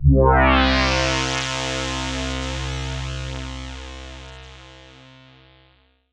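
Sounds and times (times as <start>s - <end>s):
Roland MKS-80 synth pad on C2: 0.0s - 5.8s.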